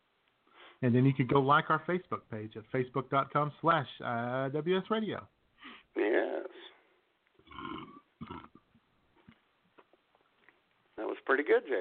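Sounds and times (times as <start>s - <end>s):
speech: 0.8s - 5.4s, 11.3s - 11.8s
person burping: 7.4s - 8.8s.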